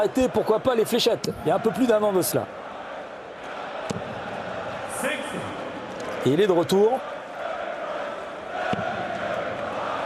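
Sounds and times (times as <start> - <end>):
speech: 0.0 - 2.8, 6.2 - 7.1
darts crowd singing in support of Gerwyn Price: 1.0 - 10.0.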